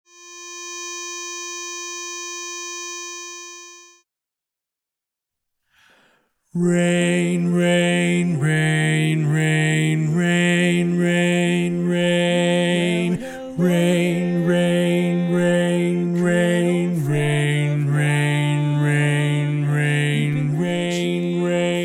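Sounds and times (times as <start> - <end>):
bass-predominant chorus music: 6.6 - 21.8.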